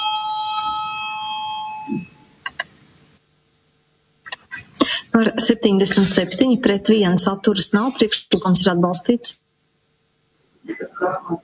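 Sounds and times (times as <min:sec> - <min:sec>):
electric chamber bell ringing in a parliament to call members to vote: 0:00.0 - 0:02.3
speech: 0:05.2 - 0:09.4.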